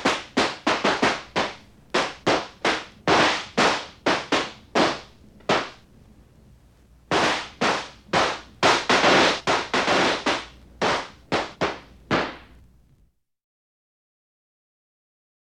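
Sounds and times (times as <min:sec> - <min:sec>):
New Year's Eve firecrackers: 0:00.0 - 0:05.9, 0:07.1 - 0:12.7.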